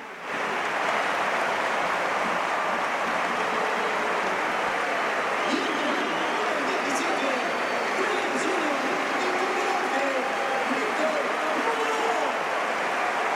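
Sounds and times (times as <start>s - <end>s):
stadium crowd ovation: 0.0s - 13.3s.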